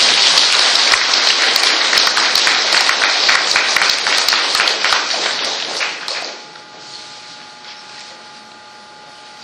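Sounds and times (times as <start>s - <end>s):
church congregation applauding: 0.0s - 6.5s.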